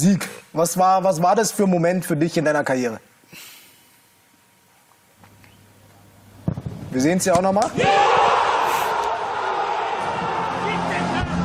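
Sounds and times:
speech: 0.0 - 3.5, 6.9 - 8.3
large stadium crowd cheering after a goal: 7.7 - 11.4.

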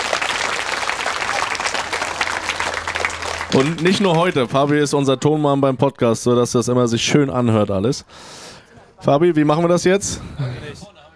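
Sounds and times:
audience applause: 0.0 - 4.8
speech: 3.6 - 10.5.

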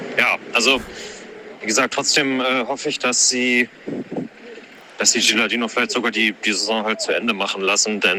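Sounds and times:
busy intersection car traffic: 0.2 - 1.4
speech: 0.6 - 1.1, 1.6 - 4.0, 5.0 - 8.1.

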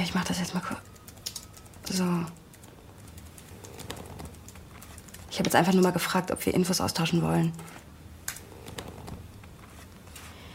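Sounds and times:
speech: 0.1 - 0.9, 1.9 - 2.4, 5.4 - 7.8
computer keyboard typing: 0.1 - 5.8, 8.3 - 9.3.

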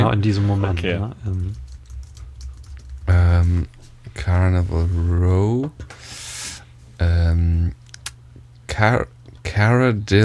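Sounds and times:
low hum: 0.0 - 8.7
speech: 0.1 - 1.7, 3.1 - 6.2, 7.0 - 7.8, 8.8 - 10.2
light typing on a computer keyboard while searching for a name online: 1.3 - 3.2.

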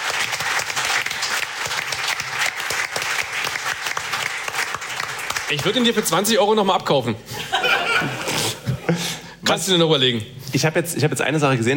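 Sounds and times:
audience applause: 0.0 - 6.2
speech: 5.5 - 8.2, 9.5 - 11.7
laughter: 7.3 - 9.1.

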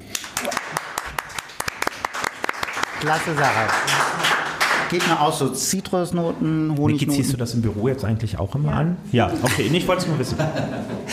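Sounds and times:
applause: 0.0 - 5.3
speech: 3.0 - 11.1
laughter: 9.2 - 11.1.

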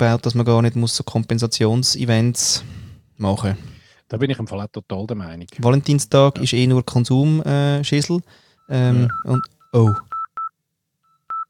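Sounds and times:
speech: 0.0 - 10.1
telephone tones of incoming call: 8.6 - 11.4.

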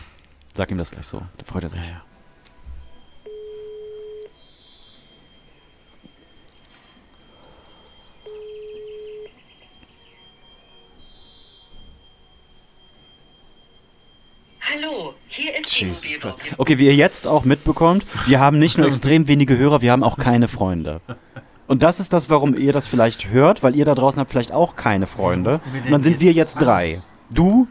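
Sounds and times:
faint continuous high whine: 0.0 - 27.7
speech: 0.6 - 2.1, 15.8 - 27.7
telephone busy signal: 3.2 - 4.4, 6.0 - 9.4
laughter: 18.0 - 19.2, 25.2 - 27.0.

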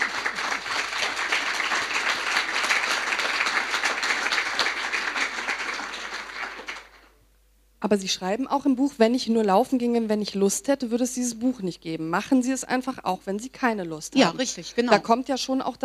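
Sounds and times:
audience applause: 0.0 - 7.1
speech: 7.8 - 15.8.

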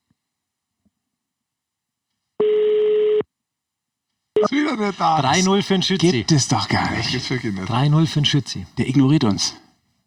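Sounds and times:
telephone ringing tone on a call: 2.4 - 3.2
speech: 4.7 - 9.6.

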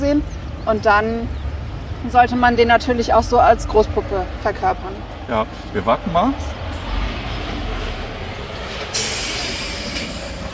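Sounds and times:
speech: 0.1 - 1.4, 2.0 - 6.6
steam being let off: 8.7 - 10.5.

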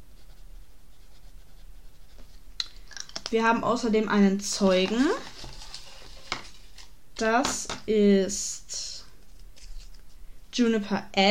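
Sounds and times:
pen jotting quick notes on paper: 0.0 - 2.4
speech: 3.3 - 5.3, 7.2 - 8.8, 10.6 - 11.2.

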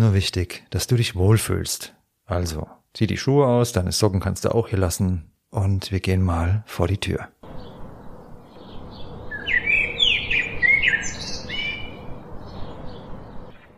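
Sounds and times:
speech: 0.0 - 7.4
steady soft hiss of flower meadow ambience: 0.0 - 13.7
bright high chirping birdsong in a flower meadow: 7.4 - 13.7.

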